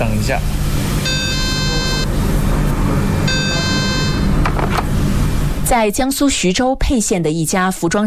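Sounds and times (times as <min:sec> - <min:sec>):
steady low rumble of noise: 0:00.0 - 0:08.0
speech: 0:00.3 - 0:00.6, 0:05.7 - 0:08.0
telephone ringing unanswered: 0:01.0 - 0:02.1, 0:03.3 - 0:04.4.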